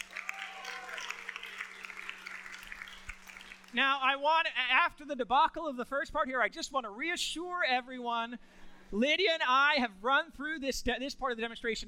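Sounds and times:
audience clapping: 0.0 - 3.8
speech: 3.7 - 11.8.

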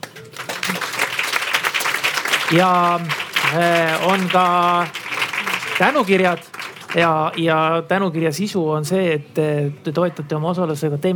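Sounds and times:
audience applause for panelists: 0.0 - 7.7
speech: 2.5 - 5.0, 5.8 - 11.1.

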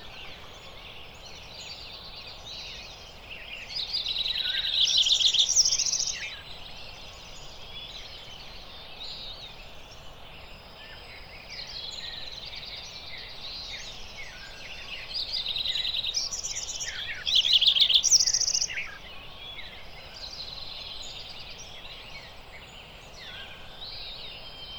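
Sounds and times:
dawn chorus of dark eyed junco, flycatchers, american robin, mountain quail: 0.0 - 24.7.

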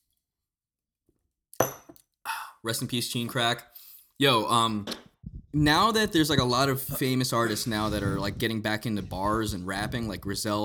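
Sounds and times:
speech: 1.6 - 1.9, 2.6 - 10.6
glasses clinking in a toast: 1.6 - 2.0.

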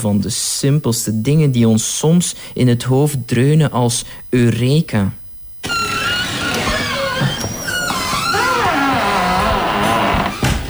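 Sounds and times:
speech: 0.0 - 5.8
large oak wooden door creaking: 5.6 - 10.6.

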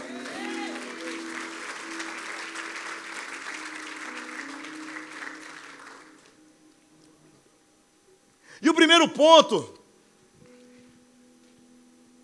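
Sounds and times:
audience applause: 0.0 - 6.4
speech: 8.6 - 9.8.

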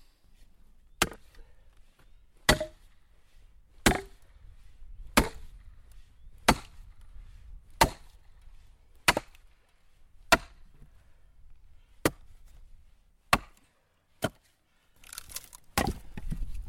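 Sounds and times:
axe strikes splitting wood: 1.0 - 1.3, 2.5 - 2.8, 3.8 - 4.2, 5.2 - 5.6, 6.5 - 6.8, 7.8 - 8.2, 9.0 - 9.4, 10.3 - 10.6, 12.0 - 12.3, 13.3 - 13.6, 14.2 - 16.4.

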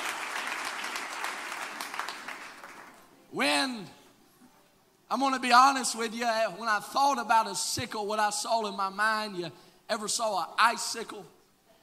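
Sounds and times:
audience clapping hands: 0.0 - 3.1
speech: 3.3 - 4.0, 5.1 - 11.4.

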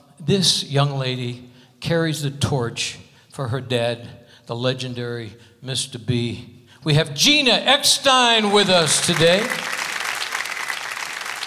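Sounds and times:
speech: 0.2 - 9.8
polite golf clap from audience: 8.4 - 11.4.

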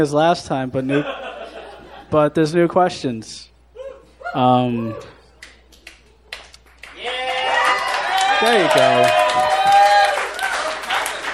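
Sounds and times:
speech: 0.0 - 1.3, 2.1 - 3.5, 4.3 - 5.1, 8.4 - 9.8
laughter: 0.0 - 11.3
weak half-hearted pity clap: 5.3 - 11.3.

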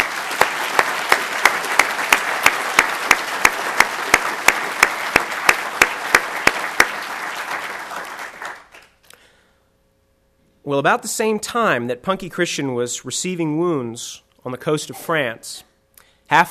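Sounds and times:
audience applause: 0.0 - 9.0
speech: 10.7 - 15.7, 16.3 - 16.4.

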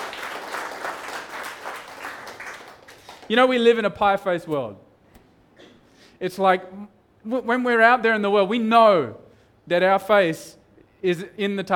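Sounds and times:
audience clapping: 0.0 - 3.7
speech: 3.3 - 4.9, 6.2 - 11.7.

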